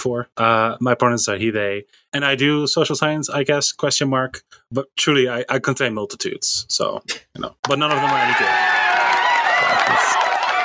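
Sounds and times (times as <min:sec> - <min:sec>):
speech: 0:00.0 - 0:08.9, 0:09.6 - 0:10.3
applause: 0:07.7 - 0:10.6.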